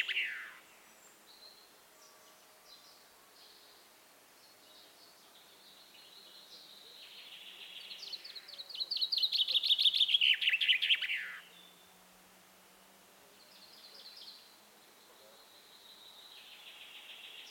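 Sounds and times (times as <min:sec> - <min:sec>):
common chaffinch song: 0:00.0 - 0:12.2, 0:13.2 - 0:17.5.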